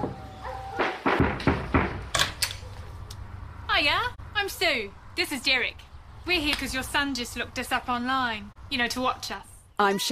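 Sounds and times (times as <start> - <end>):
loud knocking on a door: 0.8 - 2.0
speech: 3.8 - 10.1.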